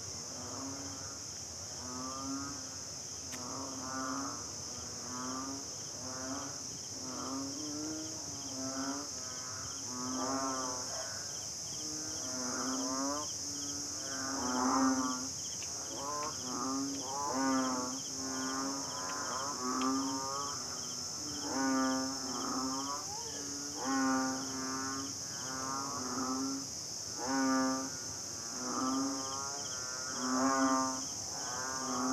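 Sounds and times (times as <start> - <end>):
banded bullfrog chorus on Lamma Island in Hong Kong: 0.2 - 32.1.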